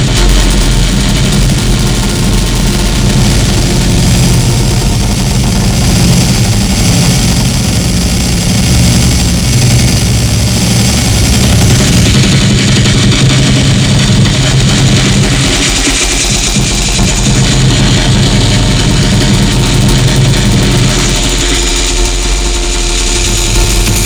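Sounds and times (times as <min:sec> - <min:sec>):
ventilator: 0:00.0 - 0:24.0.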